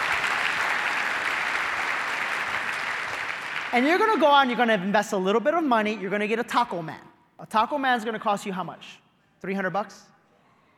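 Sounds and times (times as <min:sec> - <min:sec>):
audience applause: 0:00.0 - 0:03.8
speech: 0:03.7 - 0:10.1.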